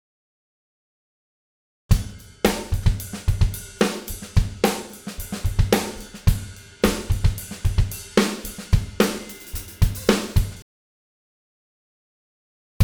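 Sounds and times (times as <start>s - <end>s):
drum beat loop: 1.9s - 10.6s.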